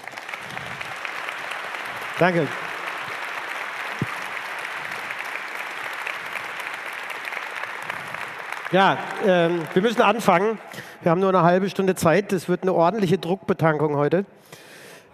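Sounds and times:
audience applause: 0:00.0 - 0:10.9
speech: 0:02.2 - 0:02.6, 0:08.7 - 0:14.6.

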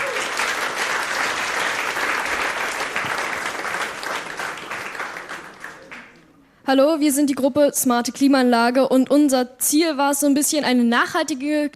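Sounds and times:
audience applause: 0:00.0 - 0:06.2
speech: 0:06.7 - 0:11.7.

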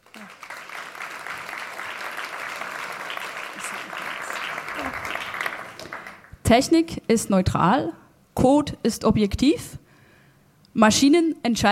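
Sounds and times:
audience applause: 0:00.0 - 0:06.4
speech: 0:06.5 - 0:09.8, 0:10.8 - 0:11.7.

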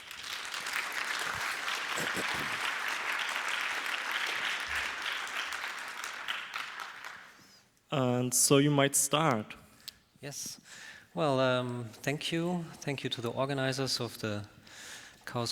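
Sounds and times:
large audience applause: 0:00.0 - 0:07.4
speech: 0:02.1 - 0:02.7, 0:07.9 - 0:09.6, 0:10.2 - 0:15.5.

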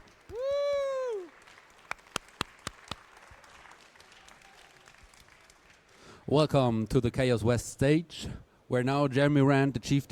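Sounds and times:
audience clapping: 0:00.0 - 0:06.1
speech: 0:06.3 - 0:10.1.

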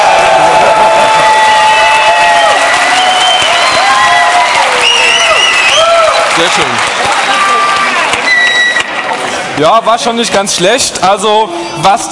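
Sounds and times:
crowd whooping and high-pitched cheering: 0:00.0 - 0:09.2
audience applause: 0:00.0 - 0:09.4
speech: 0:09.6 - 0:12.1.

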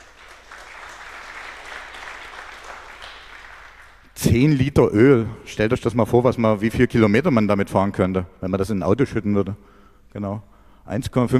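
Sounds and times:
audience applause: 0:00.0 - 0:04.1
speech: 0:04.2 - 0:11.3.

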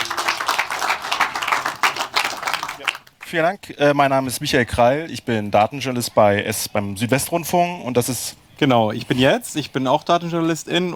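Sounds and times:
audience applause: 0:00.0 - 0:03.2
speech: 0:03.3 - 0:10.9.

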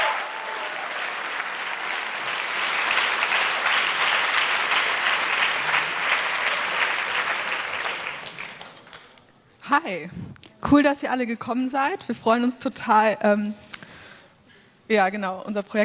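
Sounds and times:
audience applause: 0:00.0 - 0:09.2
speech: 0:09.7 - 0:13.7, 0:14.9 - 0:15.8.

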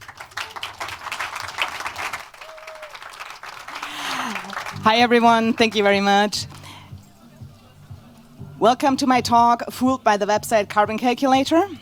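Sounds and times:
audience applause: 0:00.0 - 0:06.8
speech: 0:04.8 - 0:06.5, 0:08.6 - 0:11.8.

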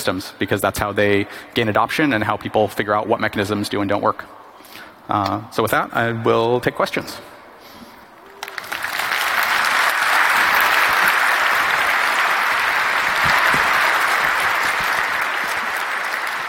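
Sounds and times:
speech: 0:00.0 - 0:07.3
audience applause after a talk: 0:08.2 - 0:16.4.

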